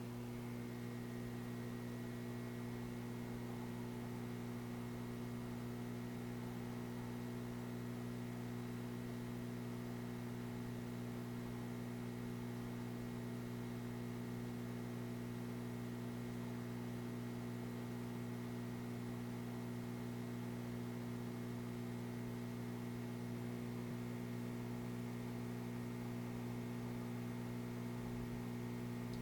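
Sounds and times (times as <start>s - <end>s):
fluorescent light hum: 0.0s - 29.1s.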